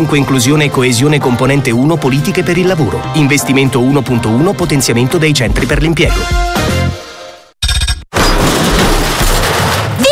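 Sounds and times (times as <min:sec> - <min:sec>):
speech: 0:00.0 - 0:06.6
bathroom renovation demolition crashing and banging: 0:08.1 - 0:10.1.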